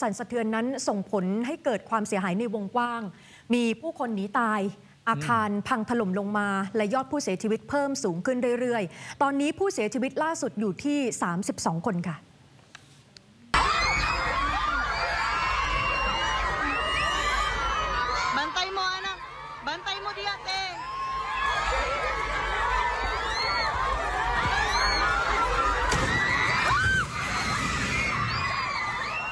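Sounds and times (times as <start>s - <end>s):
speech: 0.0s - 12.3s
primary school students screaming in fear during an earthquake in Digos: 13.6s - 29.3s.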